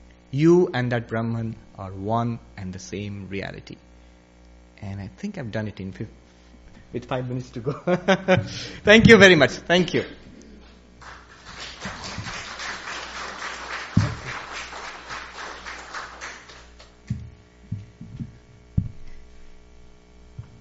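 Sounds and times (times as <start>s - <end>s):
faint hum: 0.0s - 20.5s
speech: 0.3s - 3.9s, 4.8s - 6.2s, 6.9s - 10.3s
laughter: 7.6s - 8.8s
spontaneous audience applause after lecture: 11.0s - 16.9s
scattered low thumps: 14.0s - 14.3s, 17.1s - 19.2s.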